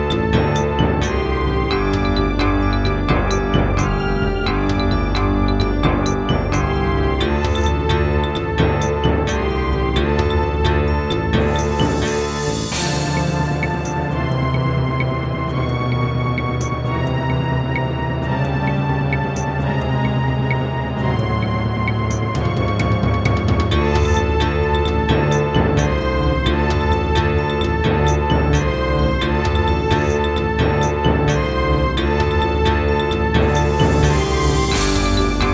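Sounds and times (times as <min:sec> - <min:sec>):
wavetable synth: 0:00.0 - 0:35.5.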